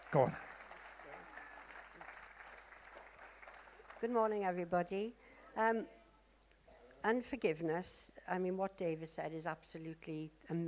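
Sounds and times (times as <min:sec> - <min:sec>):
audience applause: 0:00.0 - 0:04.2
speech: 0:00.1 - 0:00.5, 0:04.0 - 0:06.0, 0:07.0 - 0:10.6.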